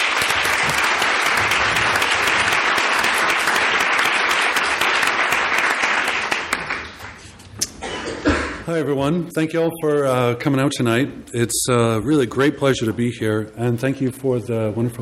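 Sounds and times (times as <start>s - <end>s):
audience applause welcoming a speaker to the stage: 0.0s - 7.3s
speech: 8.7s - 15.0s.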